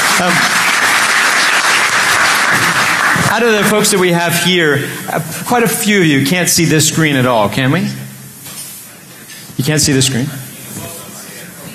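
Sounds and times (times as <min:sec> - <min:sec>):
audience applause: 0:00.0 - 0:04.1
speech: 0:00.2 - 0:00.6, 0:02.5 - 0:08.0, 0:09.6 - 0:10.4.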